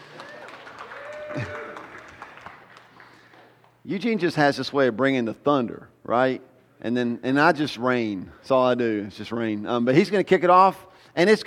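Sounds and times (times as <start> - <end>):
church congregation clapping: 0.0 - 3.8
preacher talking: 3.9 - 11.4
speech: 3.9 - 11.4.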